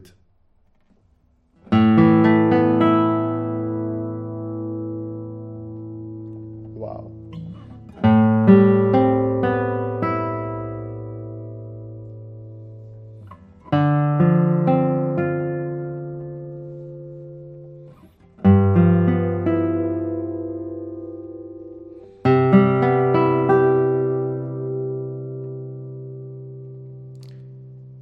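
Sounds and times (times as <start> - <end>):
guitar chords played one at a time: 1.6 - 28.0.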